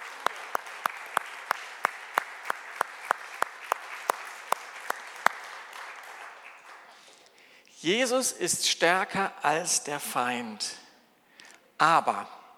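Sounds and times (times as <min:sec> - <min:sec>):
sharp rhythmic claps: 0:00.0 - 0:07.1
audience applause: 0:00.0 - 0:07.3
speech: 0:07.8 - 0:10.8, 0:11.8 - 0:12.4.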